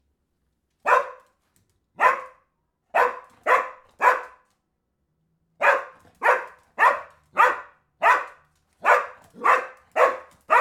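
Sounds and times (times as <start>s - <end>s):
dog barking: 0.8s - 1.3s, 2.0s - 4.4s, 5.6s - 10.5s.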